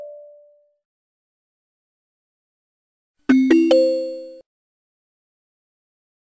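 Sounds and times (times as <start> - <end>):
notification sound: 3.3 - 4.4.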